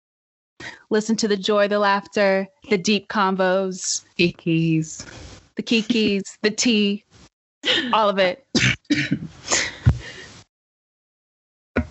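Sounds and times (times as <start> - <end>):
speech: 0.9 - 9.6
person choking, coughing and clearing throat: 5.8 - 6.2, 7.7 - 9.8.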